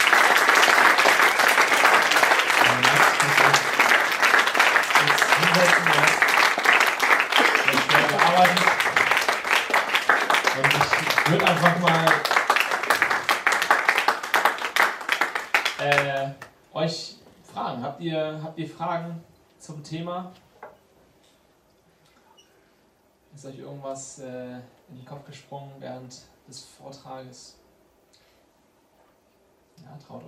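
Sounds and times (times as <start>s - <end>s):
audience applause: 0.0s - 16.2s
speech: 18.0s - 20.5s, 23.4s - 27.6s, 29.9s - 30.2s.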